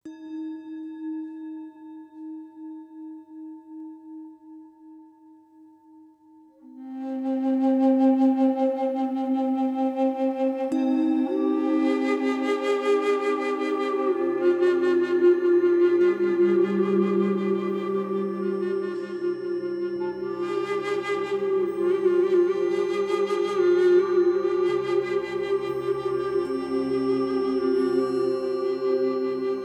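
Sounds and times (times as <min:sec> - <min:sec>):
love frequency meditation tones: 0:00.0 - 0:29.6.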